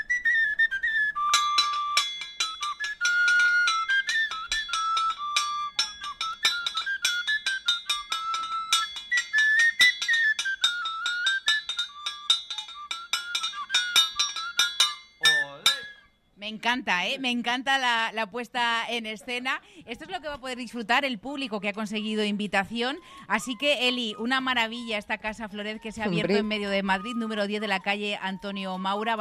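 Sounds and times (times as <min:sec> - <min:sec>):
paso doble whistle-like melody: 0:00.0 - 0:16.4, 0:21.4 - 0:29.1
farm tools clinking and tapping a beat: 0:01.3 - 0:16.1
speech: 0:16.5 - 0:29.1.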